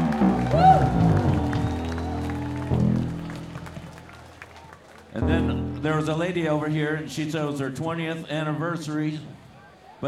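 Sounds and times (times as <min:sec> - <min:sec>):
audience applause: 0:00.0 - 0:05.2
speech: 0:05.2 - 0:09.4.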